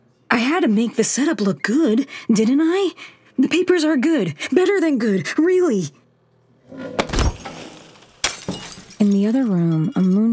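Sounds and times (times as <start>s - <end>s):
speech: 0.6s - 6.0s, 9.0s - 10.3s
large glass jar full of water shattering on the floor: 7.0s - 10.3s.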